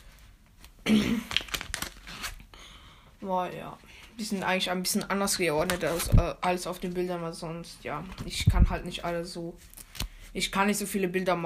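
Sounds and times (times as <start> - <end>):
cards rustling and sliding as they are put back: 0.0 - 2.5, 4.2 - 6.7, 9.2 - 10.3
speech: 0.9 - 1.3, 3.2 - 11.4.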